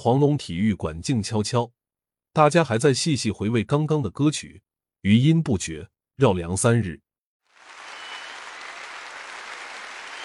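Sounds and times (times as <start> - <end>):
speech: 0.0 - 7.0
thunderous audience applause: 7.5 - 10.2.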